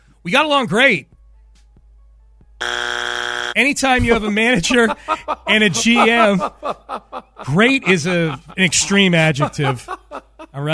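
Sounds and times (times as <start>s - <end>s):
speech: 0.2s - 1.1s, 3.6s - 10.7s
harsh electronic buzzer: 2.6s - 3.6s
laughter: 3.9s - 10.7s.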